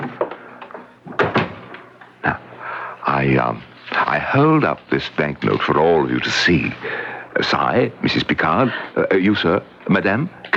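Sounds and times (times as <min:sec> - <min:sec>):
door closing as a man leaves a room: 0:00.0 - 0:02.3
speech: 0:02.2 - 0:02.4, 0:03.1 - 0:10.5.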